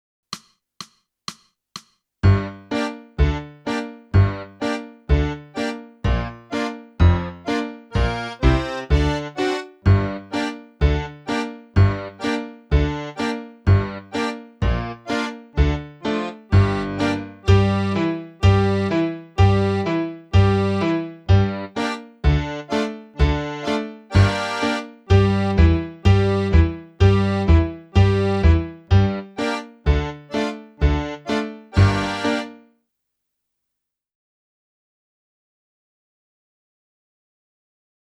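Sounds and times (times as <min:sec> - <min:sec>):
clarinet: 0:02.4 - 0:32.6.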